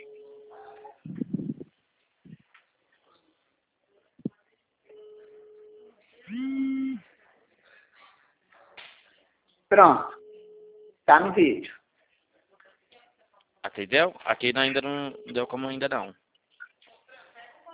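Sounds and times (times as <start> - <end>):
incoming WhatsApp video call ringing tones: 0.0 - 1.1, 4.9 - 7.0, 9.9 - 11.4, 14.6 - 16.1
brief pitched tone: 6.3 - 7.0
speech: 9.8 - 10.2, 11.1 - 11.8, 13.8 - 16.2.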